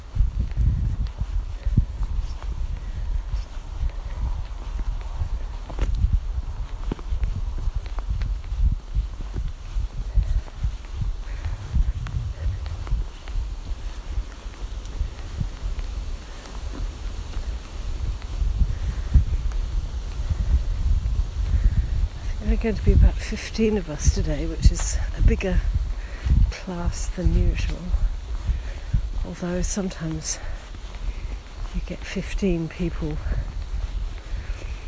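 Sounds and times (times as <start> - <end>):
cantering horse thuds: 0.0 - 34.8
wind buffeting the microphone on a grey overcast day: 0.0 - 34.8
speech: 22.6 - 25.8, 26.7 - 28.1, 29.3 - 30.6, 31.8 - 33.5.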